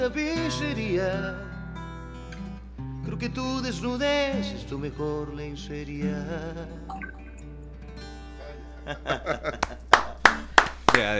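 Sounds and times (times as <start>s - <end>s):
speech: 0.0s - 1.5s, 3.1s - 7.1s, 8.9s - 9.7s, 11.0s - 11.1s
laughter: 8.8s - 10.3s
hand claps: 9.5s - 11.1s.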